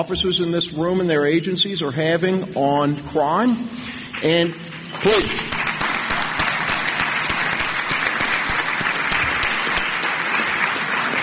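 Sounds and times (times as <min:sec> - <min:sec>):
speech: 0:00.0 - 0:05.6
audience applause: 0:04.2 - 0:11.2.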